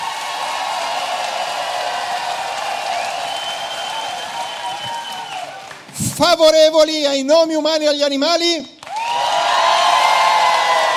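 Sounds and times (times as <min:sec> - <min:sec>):
audience clapping and cheering: 0:00.0 - 0:06.5, 0:08.8 - 0:10.9
whistles: 0:02.9 - 0:05.5
speech: 0:06.2 - 0:08.8.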